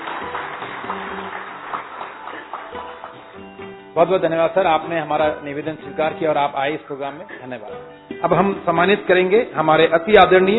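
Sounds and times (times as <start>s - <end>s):
audience applause: 0.0s - 3.4s
speech: 4.0s - 10.5s.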